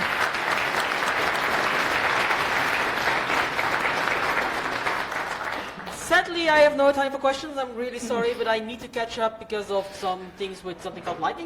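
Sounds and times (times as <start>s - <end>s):
large audience applause: 0.0s - 6.0s
speech: 6.4s - 11.4s.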